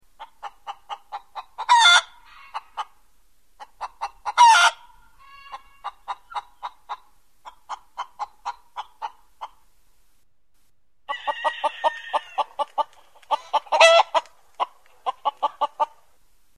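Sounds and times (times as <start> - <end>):
chickens clucking: 0.2 - 3.0, 3.6 - 9.7, 11.1 - 16.2.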